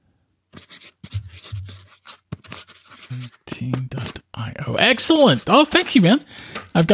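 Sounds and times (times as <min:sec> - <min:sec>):
pen scratching on paper: 0:00.6 - 0:04.2, 0:04.9 - 0:06.0
speech: 0:03.1 - 0:06.9.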